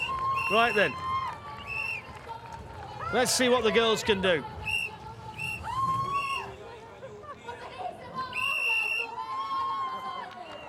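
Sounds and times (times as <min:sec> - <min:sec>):
crowd whistling: 0:00.0 - 0:02.2, 0:04.6 - 0:06.6, 0:08.3 - 0:09.2, 0:10.3 - 0:10.6
speech: 0:00.5 - 0:01.1, 0:03.1 - 0:04.5.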